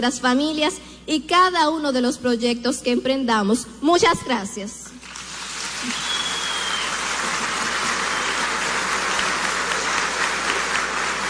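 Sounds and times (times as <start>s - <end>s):
speech: 0.0s - 4.8s, 5.8s - 6.0s
audience applause: 5.0s - 11.2s.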